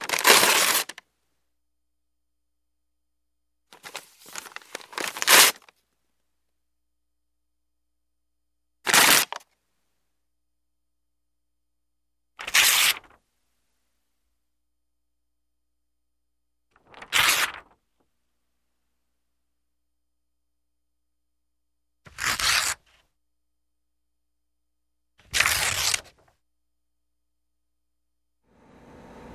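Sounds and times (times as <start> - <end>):
paper ripping: 0.0 - 1.0, 3.8 - 5.7, 8.9 - 9.4, 12.4 - 13.2, 16.8 - 17.8, 22.1 - 23.0, 25.2 - 26.2.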